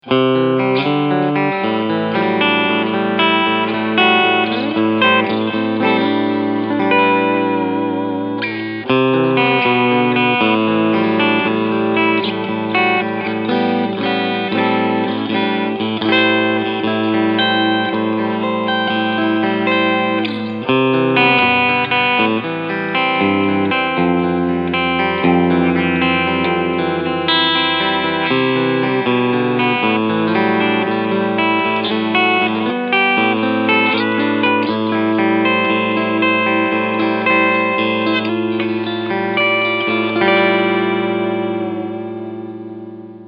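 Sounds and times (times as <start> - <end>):
clean guitar in switch position four: 0.0 - 43.2.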